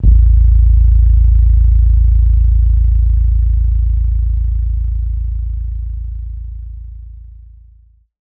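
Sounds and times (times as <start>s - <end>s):
27.5 Hz sub bass hit: 0.0s - 7.8s.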